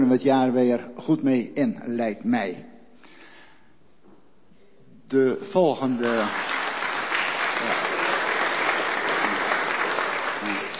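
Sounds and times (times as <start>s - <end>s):
speech: 0.0s - 2.7s, 5.1s - 6.5s
people clapping: 5.8s - 10.7s.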